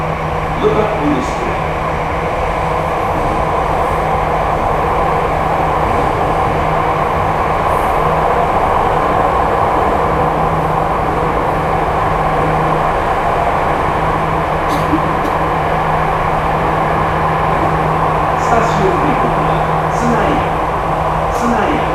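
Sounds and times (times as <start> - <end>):
Jakarta MRT metro train running: 0.0 - 21.9
speech: 0.6 - 1.8.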